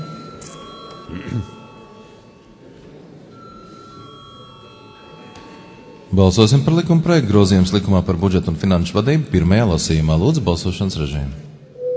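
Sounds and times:
parliament chamber bell ringing: 0.0 - 2.6, 3.3 - 6.6
murmur of room noise: 0.0 - 11.9
speech: 1.1 - 1.6, 6.2 - 11.5.

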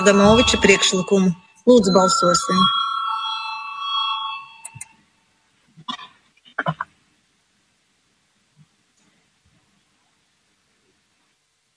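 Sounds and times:
speech: 0.0 - 2.8
parliament voting bell: 0.0 - 4.9.

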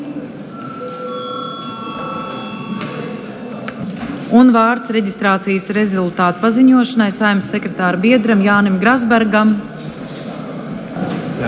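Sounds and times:
parliament chamber electric bell ringing: 0.5 - 3.7
speech: 4.3 - 9.7.

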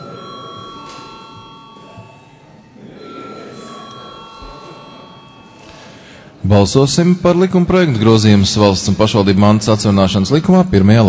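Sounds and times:
parliament chamber voting bell ringing: 0.0 - 6.3
low murmur: 0.0 - 11.0
speech: 6.4 - 11.0.

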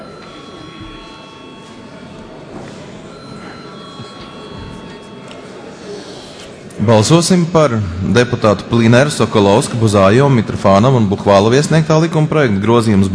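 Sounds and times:
parliament chamber bell ringing before a vote: 0.0 - 7.6
low murmur of room noise: 0.0 - 13.1
speech: 6.8 - 13.1.

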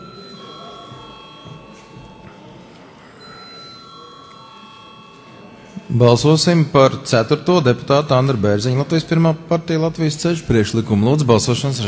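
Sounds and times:
parliament voting bell ringing: 0.0 - 8.5
low murmur of the parliament chamber: 0.0 - 11.8
speech: 5.9 - 11.8.

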